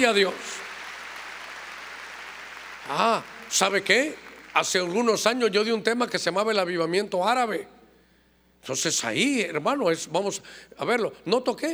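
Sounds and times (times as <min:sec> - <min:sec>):
speech: 0:00.0 - 0:00.5, 0:02.9 - 0:07.8, 0:08.6 - 0:11.7
audience applause: 0:00.0 - 0:05.4.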